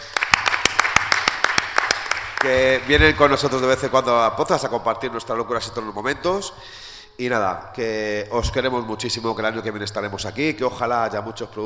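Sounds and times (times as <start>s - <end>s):
audience applause: 0.0s - 3.8s
speech: 2.4s - 11.6s.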